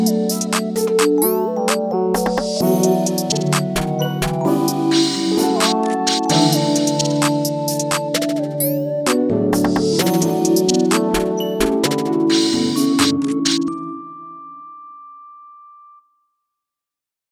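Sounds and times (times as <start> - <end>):
plugg beat loop: 0.0 - 13.7.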